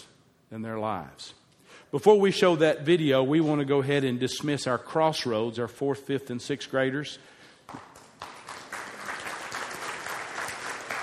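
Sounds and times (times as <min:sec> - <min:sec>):
speech: 0:00.5 - 0:07.9
audience applause: 0:08.0 - 0:11.0.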